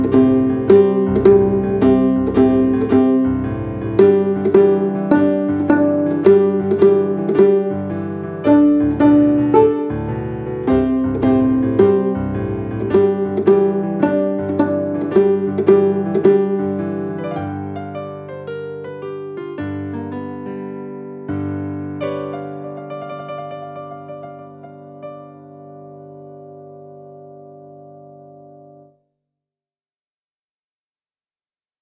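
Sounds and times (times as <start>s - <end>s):
viola playing blues: 0.0s - 18.0s.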